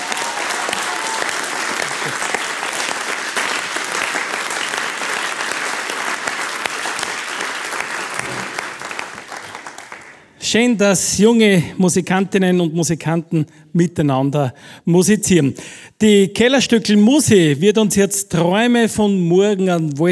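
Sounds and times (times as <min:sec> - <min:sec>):
audience applause: 0:00.0 - 0:10.3
speech: 0:10.5 - 0:20.0.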